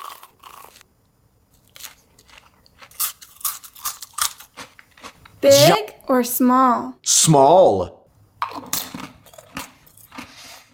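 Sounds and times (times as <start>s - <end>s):
person biting and chewing a crispy Korean corn dog: 0.0s - 0.8s, 1.5s - 5.7s, 8.4s - 10.7s
speech: 5.4s - 8.0s.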